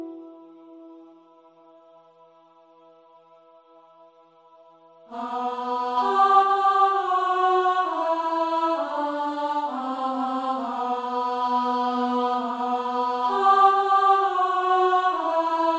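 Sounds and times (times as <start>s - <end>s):
soprano singing a lament: 5.1s - 15.7s.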